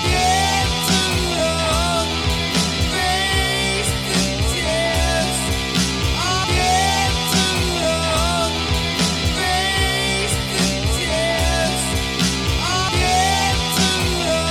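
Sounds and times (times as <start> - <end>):
guitar loop: 0.0 - 14.4.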